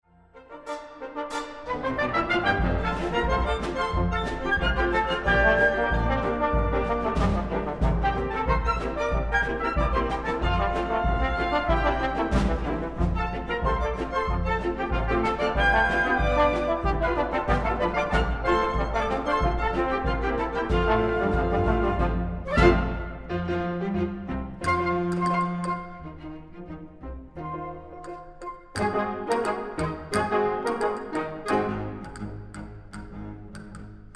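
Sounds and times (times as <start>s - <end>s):
ragtime orchestra: 0.1s - 34.1s.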